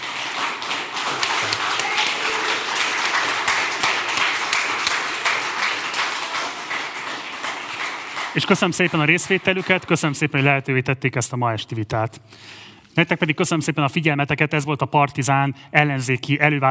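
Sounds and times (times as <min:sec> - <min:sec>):
audience applause: 0:00.0 - 0:10.4
speech: 0:08.4 - 0:16.6.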